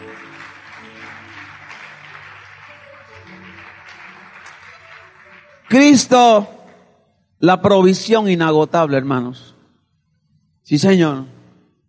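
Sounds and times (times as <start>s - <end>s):
audience applause: 0.0s - 6.8s
speech: 5.7s - 6.6s, 7.4s - 9.5s, 10.7s - 11.4s.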